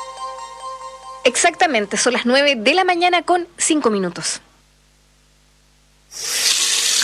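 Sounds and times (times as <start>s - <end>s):
speech: 1.2s - 4.5s
water running from a tap: 6.1s - 7.0s.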